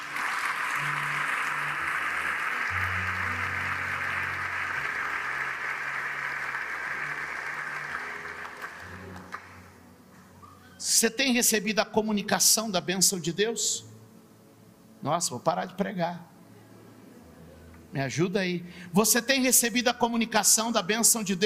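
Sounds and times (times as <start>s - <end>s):
audience applause: 0.0s - 9.7s
speech: 11.0s - 13.9s, 15.1s - 16.3s, 18.0s - 21.4s.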